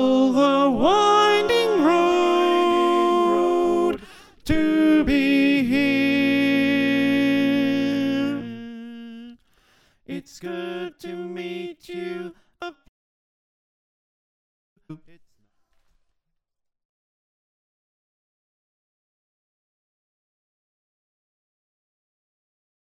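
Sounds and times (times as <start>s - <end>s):
choir with soprano: 0.0s - 8.7s, 10.1s - 12.3s.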